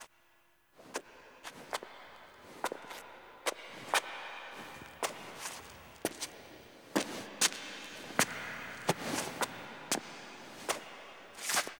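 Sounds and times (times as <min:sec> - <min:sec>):
foley footsteps: 0:00.8 - 0:11.7.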